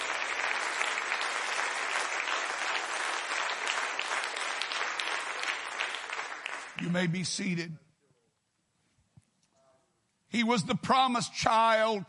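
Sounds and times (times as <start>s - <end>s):
audience clapping hands: 0.0s - 7.5s
speech: 6.8s - 7.9s, 10.4s - 12.0s.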